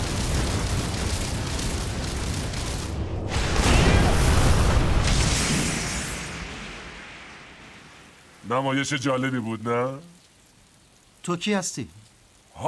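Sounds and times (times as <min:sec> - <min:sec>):
powerful strike with explosive boom: 0:00.0 - 0:08.0
roaring rumble with crackling debris-like noise: 0:00.0 - 0:08.2
speech: 0:08.5 - 0:10.1, 0:11.2 - 0:12.0.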